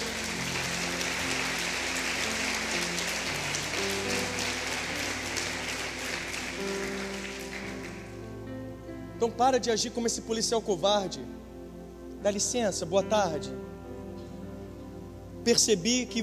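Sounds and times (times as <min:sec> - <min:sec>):
audience applause: 0:00.0 - 0:08.2
keyboard chords: 0:00.0 - 0:16.2
speech: 0:09.2 - 0:11.4, 0:12.2 - 0:13.7, 0:15.4 - 0:16.2.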